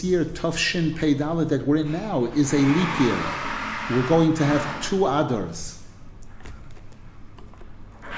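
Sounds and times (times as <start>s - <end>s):
speech: 0.0s - 5.8s
drilling during bench repair work: 2.0s - 5.0s.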